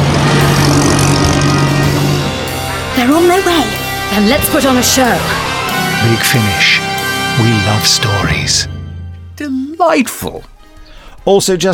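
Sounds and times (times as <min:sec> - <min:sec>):
vintage Bentley car engine roaring: 0:00.0 - 0:08.1
speech: 0:03.1 - 0:08.7, 0:09.4 - 0:10.5, 0:11.2 - 0:11.7.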